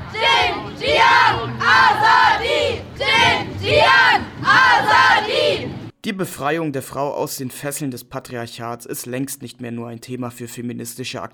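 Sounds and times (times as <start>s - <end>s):
protesters chanting a slogan in Persian in Göttingen streets: 0.0s - 5.8s
speech: 6.1s - 11.3s.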